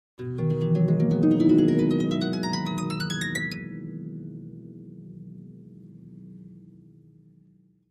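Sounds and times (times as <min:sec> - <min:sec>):
harp ascending glissando on a seventh: 0:00.3 - 0:04.2.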